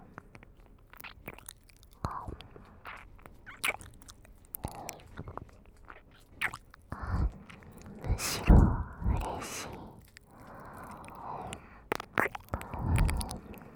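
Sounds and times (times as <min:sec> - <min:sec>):
ear licking on a train: 0:00.0 - 0:13.7
person whispering on a train: 0:02.0 - 0:03.0, 0:04.6 - 0:05.3, 0:06.9 - 0:13.7.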